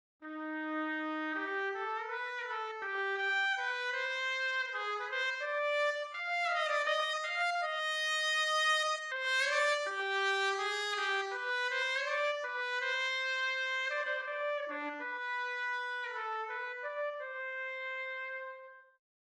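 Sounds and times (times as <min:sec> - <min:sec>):
trumpet: 0:00.2 - 0:19.0.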